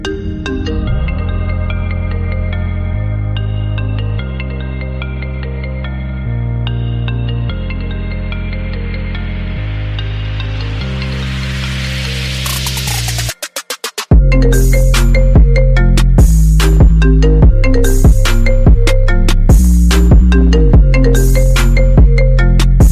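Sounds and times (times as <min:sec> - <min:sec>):
iPhone 8 Plus ringtone: 0:00.0 - 0:22.9.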